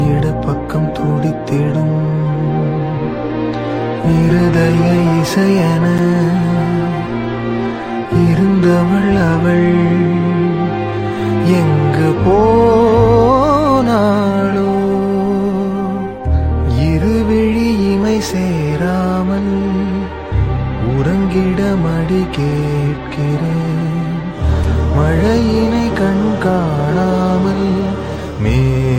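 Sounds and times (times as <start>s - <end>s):
sad Tamil music: 0.0s - 28.9s.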